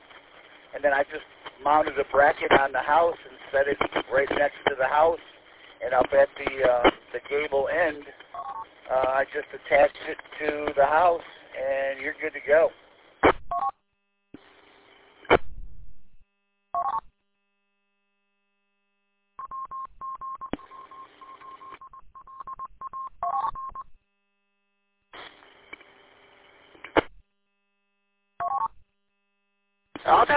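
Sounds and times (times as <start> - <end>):
ham radio noise bursts: 0.0 - 13.4, 25.1 - 27.1, 30.0 - 30.3
speech: 0.7 - 8.2, 8.9 - 12.8
ham radio repeater Morse code identification tones: 19.4 - 23.9.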